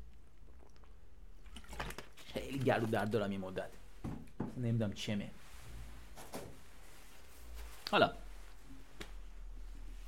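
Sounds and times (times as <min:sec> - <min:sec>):
person drinking water: 0:00.0 - 0:03.1
speech: 0:02.3 - 0:03.8, 0:04.6 - 0:05.4, 0:07.9 - 0:08.2.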